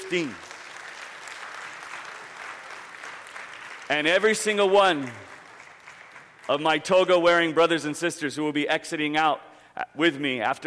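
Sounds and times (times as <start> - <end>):
audience round of applause: 0.0 - 6.8
speech: 0.1 - 0.5, 3.9 - 5.3, 6.5 - 10.6.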